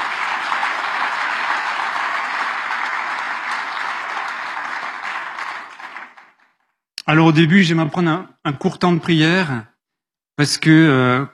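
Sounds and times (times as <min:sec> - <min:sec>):
audience applause: 0:00.0 - 0:06.7
speech: 0:07.1 - 0:09.7, 0:10.4 - 0:11.3.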